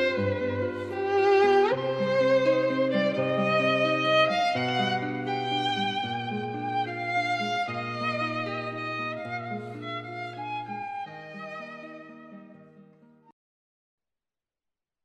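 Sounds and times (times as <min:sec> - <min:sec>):
classical guitar: 0:00.0 - 0:13.3
classical violin: 0:00.0 - 0:13.3.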